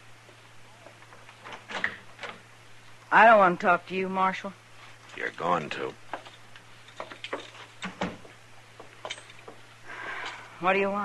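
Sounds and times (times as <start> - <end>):
low steady hum: 0.0 - 11.0
door opening with clunks and rattles: 1.4 - 2.4, 7.0 - 9.6
speech: 3.1 - 4.6, 5.2 - 6.0, 10.6 - 11.0.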